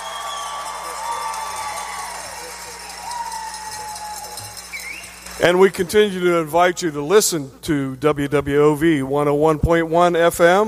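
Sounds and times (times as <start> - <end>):
live audience applauding and cheering: 0.0 - 5.6
speech: 5.4 - 10.6.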